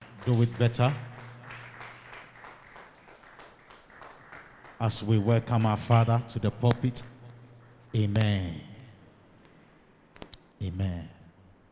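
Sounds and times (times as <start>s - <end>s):
church congregation clapping hands: 0.0s - 8.9s
speech: 0.2s - 1.1s, 4.8s - 7.1s, 7.9s - 8.7s, 10.6s - 11.1s.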